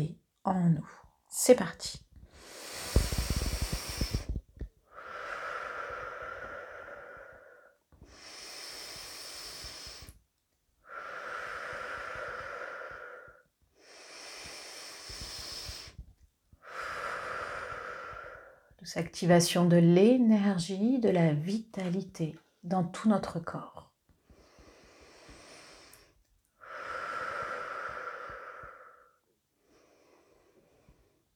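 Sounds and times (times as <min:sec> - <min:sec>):
speech: 0:00.0 - 0:02.0, 0:18.9 - 0:23.8
deep slow breathing during a guided energy and vitality breathing exercise: 0:02.2 - 0:10.2, 0:10.8 - 0:18.8, 0:24.2 - 0:31.3.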